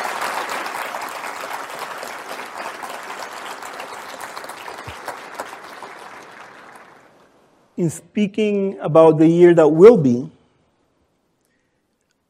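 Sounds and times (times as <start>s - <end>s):
audience applause: 0.0s - 7.3s
speech: 7.8s - 10.4s.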